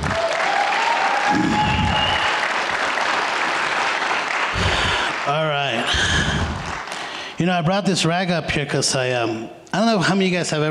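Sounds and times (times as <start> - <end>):
audience applause: 0.0 - 7.3
speech: 7.4 - 10.6.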